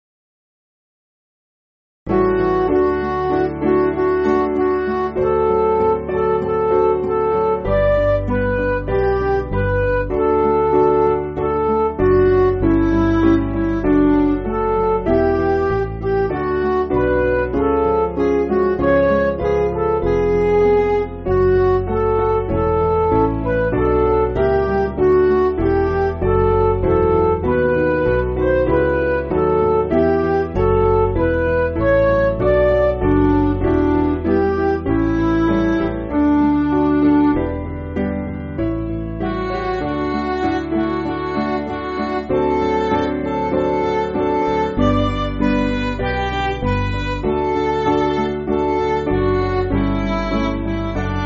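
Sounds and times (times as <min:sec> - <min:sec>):
MIDI backing music: 0:02.1 - 0:51.2.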